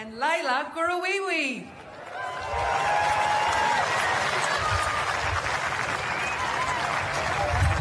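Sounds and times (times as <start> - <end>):
speech: 0.1 - 3.4
smattering of applause: 1.8 - 7.7.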